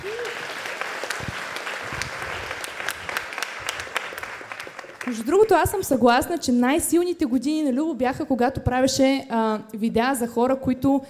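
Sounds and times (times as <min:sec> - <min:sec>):
audience applause at a comedy roast: 0:00.0 - 0:05.6
speech: 0:05.1 - 0:11.0.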